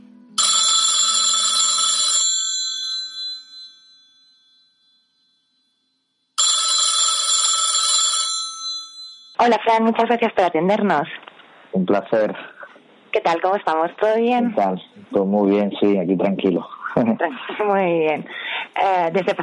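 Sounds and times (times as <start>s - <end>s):
telephone ringing while calling a guest: 0.4s - 5.7s, 6.4s - 9.4s
speech: 9.4s - 12.5s, 13.2s - 19.4s
laughter: 16.4s - 19.4s.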